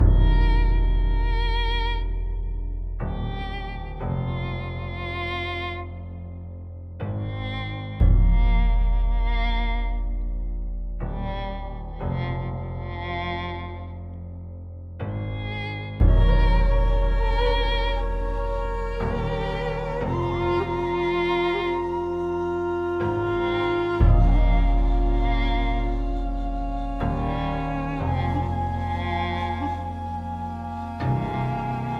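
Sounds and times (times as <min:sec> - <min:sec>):
calm music: 0:00.0 - 0:31.9.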